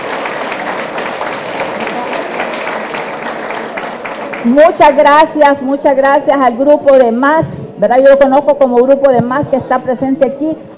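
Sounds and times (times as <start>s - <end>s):
crowd applauding: 0.0s - 5.4s
speech: 4.4s - 10.7s.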